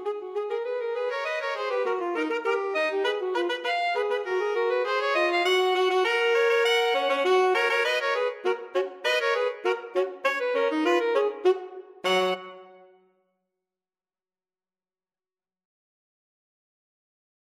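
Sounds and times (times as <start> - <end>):
alto sax: 0.0 - 13.0.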